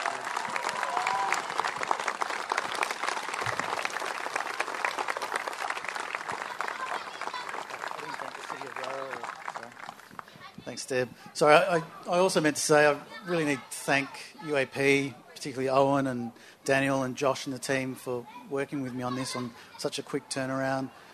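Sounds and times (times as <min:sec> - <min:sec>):
faint voices and whoops: 0:00.0 - 0:01.8
audience applause: 0:00.0 - 0:10.3
speech: 0:10.8 - 0:21.1.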